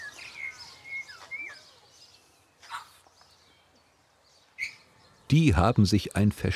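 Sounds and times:
hens calling in an aviary: 0.0s - 3.1s
speech: 5.3s - 6.5s.

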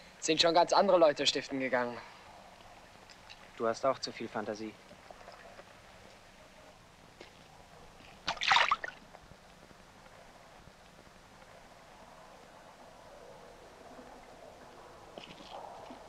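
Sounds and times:
faint water trickling: 0.0s - 16.0s
speech: 0.2s - 2.2s, 3.6s - 4.9s
fish splashing in water: 8.2s - 9.0s.

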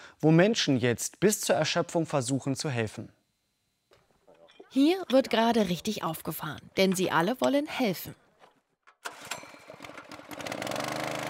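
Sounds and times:
speech: 0.2s - 3.2s, 4.7s - 8.2s
small engine-driven water pump starting and running: 9.7s - 11.2s.

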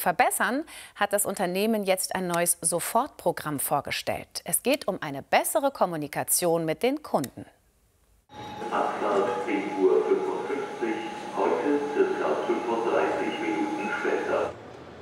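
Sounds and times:
speech: 0.0s - 7.6s
busy main railway station ambience at Hannover Hauptbahnhof: 8.3s - 15.0s.

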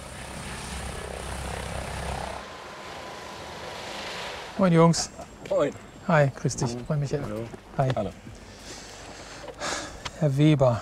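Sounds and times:
ADAC rescue helicopter in flight engine and rotor roar: 0.0s - 7.2s
speech: 4.6s - 8.3s, 10.2s - 10.7s.

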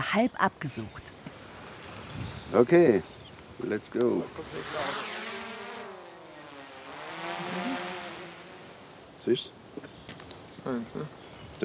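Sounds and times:
speech: 0.0s - 1.2s, 2.2s - 5.1s, 9.2s - 9.9s, 10.6s - 11.6s
drone buzzing in flight: 4.2s - 9.0s.

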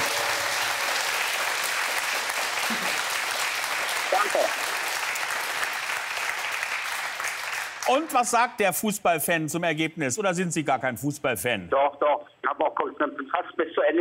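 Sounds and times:
studio group applauding: 0.0s - 8.4s
speech: 7.9s - 13.9s.

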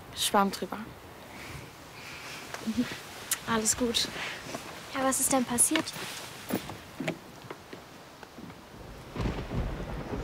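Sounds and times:
speech: 0.2s - 1.0s, 2.6s - 6.7s
thunder rumbling: 8.7s - 10.2s.

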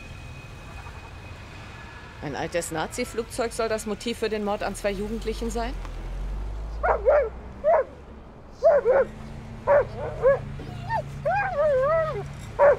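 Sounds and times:
speech: 2.2s - 5.9s
dog barking: 6.8s - 8.0s, 8.6s - 12.7s.

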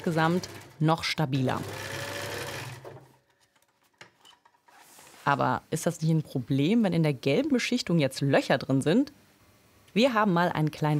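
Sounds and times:
speech: 0.0s - 1.9s, 5.3s - 9.2s, 10.0s - 10.9s
sewing machine stitching a second seam on yellow-coated trousers: 0.0s - 3.1s.

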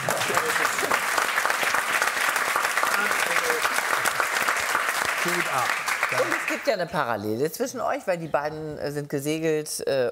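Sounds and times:
audience applause: 0.0s - 6.8s
speech: 5.2s - 10.0s.

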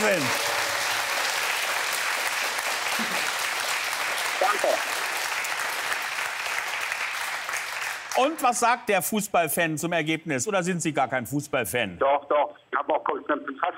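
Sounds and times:
studio applause: 0.0s - 8.7s
speech: 8.2s - 13.7s.

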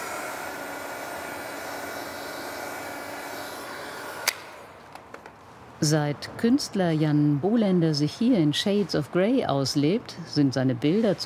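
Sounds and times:
hair dryer blowing: 0.0s - 4.7s
speech: 5.8s - 11.2s.

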